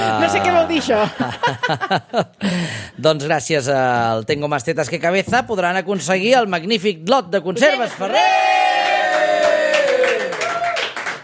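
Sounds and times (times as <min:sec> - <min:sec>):
laughter: 0:00.0 - 0:02.4
speech: 0:00.3 - 0:08.6
audience applause: 0:07.7 - 0:11.2.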